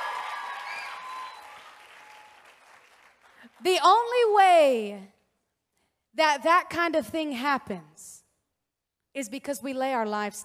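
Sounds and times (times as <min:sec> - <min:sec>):
audience applause: 0:00.0 - 0:03.5
speech: 0:03.5 - 0:05.1, 0:06.2 - 0:08.2, 0:09.2 - 0:10.4.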